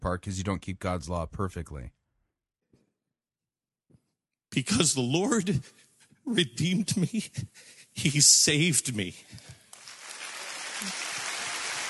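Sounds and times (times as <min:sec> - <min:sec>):
speech: 0:00.0 - 0:02.0, 0:04.5 - 0:09.6
audience clapping at a Christian megachurch: 0:09.7 - 0:11.8.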